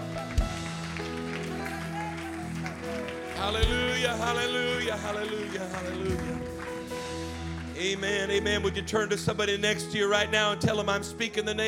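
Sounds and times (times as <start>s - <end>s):
audience hand clapping: 0.0s - 8.5s
speech: 3.4s - 6.5s, 7.8s - 11.6s.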